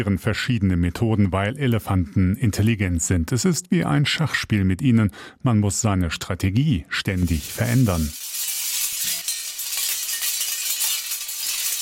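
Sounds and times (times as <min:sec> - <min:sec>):
speech: 0:00.0 - 0:08.2
metal strips clattering in the wind: 0:07.2 - 0:11.7.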